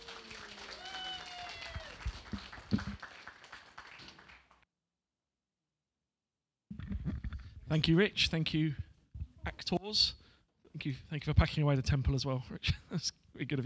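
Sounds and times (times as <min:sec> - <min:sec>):
audience clapping: 0:00.0 - 0:04.6
speech: 0:07.7 - 0:08.8, 0:09.7 - 0:10.2, 0:10.8 - 0:13.6.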